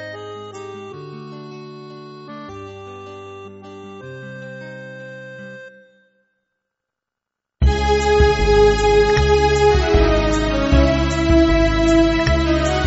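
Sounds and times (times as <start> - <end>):
synthesizer playing tango music: 0.0 - 6.2, 7.6 - 12.8.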